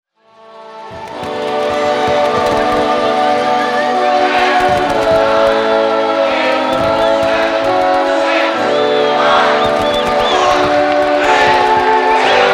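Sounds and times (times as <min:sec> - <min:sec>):
nuclear explosion: 0:01.0 - 0:03.5, 0:04.3 - 0:08.7, 0:09.6 - 0:12.4.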